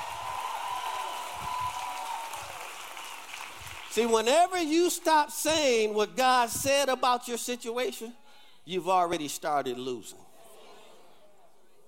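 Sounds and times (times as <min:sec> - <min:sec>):
audience applause: 0:00.0 - 0:04.1
speech: 0:04.0 - 0:10.3.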